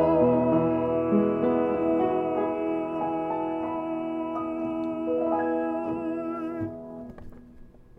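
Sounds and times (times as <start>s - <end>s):
soprano singing: 0.0s - 7.3s.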